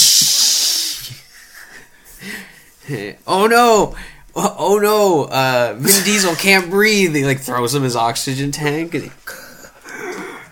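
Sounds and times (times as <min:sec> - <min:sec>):
vocal imitation of nitrous oxide boost hiss: 0:00.0 - 0:01.2
speech: 0:02.9 - 0:09.3.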